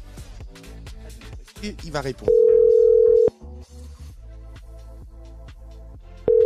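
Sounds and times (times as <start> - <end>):
speech: 1.6 - 2.5
telephone ringback tone of an unanswered call to a radio guest: 2.3 - 3.3, 6.3 - 6.4.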